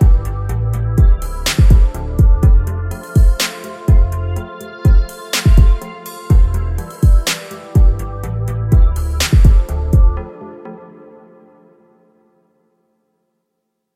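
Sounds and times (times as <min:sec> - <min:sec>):
epic heavy trap beat instrumental: 0:00.0 - 0:10.3.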